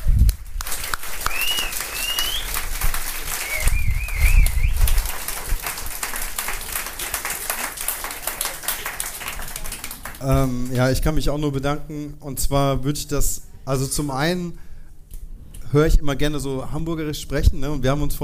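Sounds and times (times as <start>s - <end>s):
crowd applauding: 0.0s - 10.8s
rising warbling whistles: 1.2s - 2.6s, 3.3s - 5.0s
speech: 10.3s - 14.6s, 15.7s - 18.2s.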